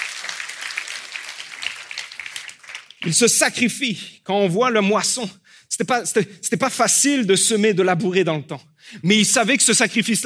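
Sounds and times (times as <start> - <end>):
audience applause: 0.0 - 3.2
speech: 3.0 - 10.2.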